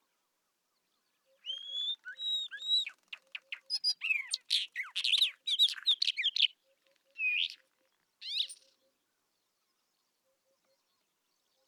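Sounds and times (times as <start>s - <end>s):
Isabelline Wheatear song: 0.9s - 8.9s.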